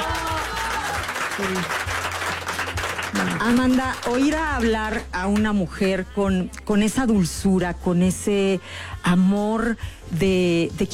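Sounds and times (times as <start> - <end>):
audience applause: 0.0 - 4.7
speech: 1.4 - 1.8, 3.1 - 10.9.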